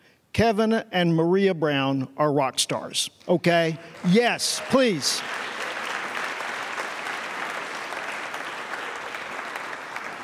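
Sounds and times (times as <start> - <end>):
speech: 0.4 - 5.5
room full of people clapping: 3.8 - 10.2.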